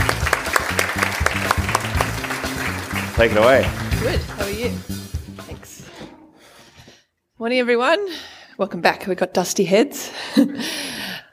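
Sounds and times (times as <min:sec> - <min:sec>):
audience applause at a conference session: 0:00.0 - 0:04.7
speech: 0:03.2 - 0:05.2, 0:07.4 - 0:10.9.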